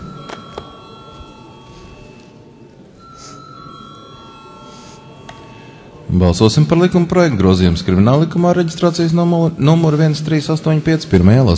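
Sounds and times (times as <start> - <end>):
parliament session bell ringing: 0.0 - 6.8
low murmur of noise: 0.0 - 11.5
speech: 6.1 - 11.5.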